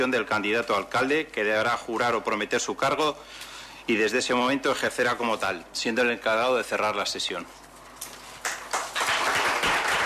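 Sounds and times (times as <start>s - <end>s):
speech: 0.0s - 7.6s
applause from party colleagues and voters at a town council session: 8.4s - 10.0s.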